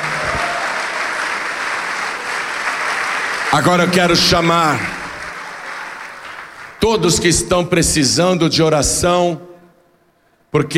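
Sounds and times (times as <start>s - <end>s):
audience applauding: 0.0s - 7.4s
speech: 3.6s - 5.0s, 6.8s - 9.5s, 10.5s - 10.7s.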